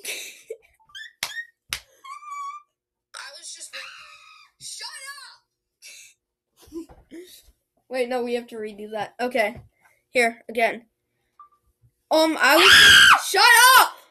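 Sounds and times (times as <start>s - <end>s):
speech: 7.9s - 10.9s, 12.1s - 14.0s
child screaming in a playful game: 12.4s - 14.0s.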